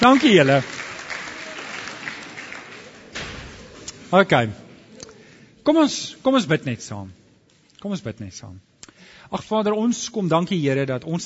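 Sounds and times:
speech: 0.0 - 0.8, 4.1 - 4.6, 5.6 - 7.2, 7.8 - 11.2
group clapping: 0.0 - 4.0.

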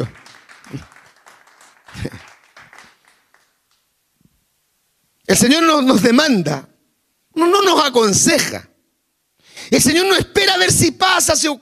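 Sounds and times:
speech: 0.0 - 0.9, 5.3 - 6.7, 7.4 - 8.7, 9.7 - 11.5
audience clapping in praise: 0.0 - 4.0.

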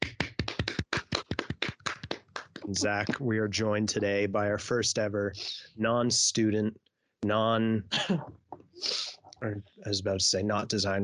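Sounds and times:
people clapping: 0.0 - 3.2
speech: 2.7 - 11.0.

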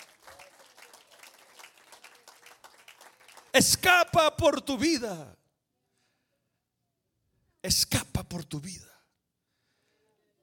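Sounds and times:
audience applause: 0.0 - 3.6
speech: 3.6 - 5.4, 7.6 - 8.9.

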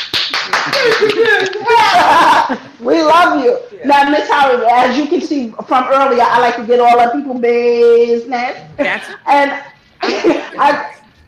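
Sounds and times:
audience clapping: 0.0 - 1.7
laughter: 0.5 - 2.8, 10.0 - 11.0
speech: 2.5 - 11.0.

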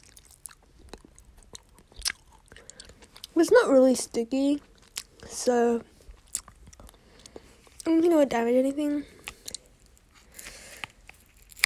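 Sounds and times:
chewing honeycomb: 0.0 - 3.4, 4.6 - 5.3, 6.0 - 7.9, 9.2 - 11.6
speech: 3.4 - 4.7, 5.3 - 5.9, 7.9 - 9.1.

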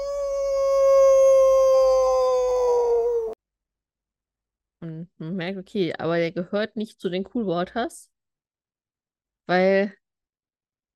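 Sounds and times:
coyote howl: 0.0 - 3.4
speech: 5.5 - 8.1, 9.5 - 10.0.

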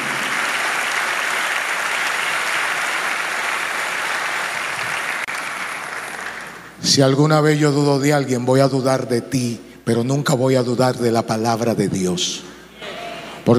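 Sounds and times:
crowd applause: 0.0 - 6.8
speech: 6.8 - 12.5.

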